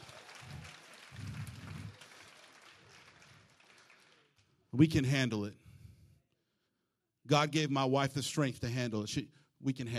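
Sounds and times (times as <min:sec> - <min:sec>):
audience applause: 0:00.0 - 0:04.5
speech: 0:04.8 - 0:05.6, 0:07.3 - 0:09.9.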